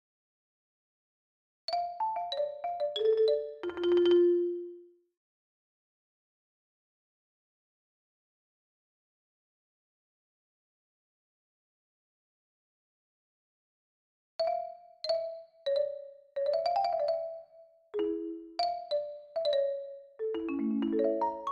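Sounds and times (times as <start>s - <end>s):
marimba melody: 1.7s - 4.9s, 14.4s - 21.5s.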